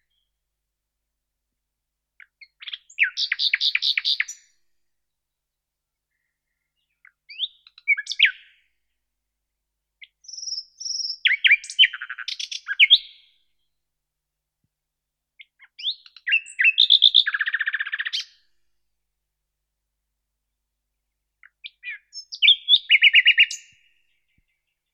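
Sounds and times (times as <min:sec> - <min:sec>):
common nightingale Luscinia megarhynchos singing: 0:02.2 - 0:04.5, 0:06.1 - 0:08.7, 0:10.0 - 0:13.4, 0:15.4 - 0:18.4, 0:21.4 - 0:24.9.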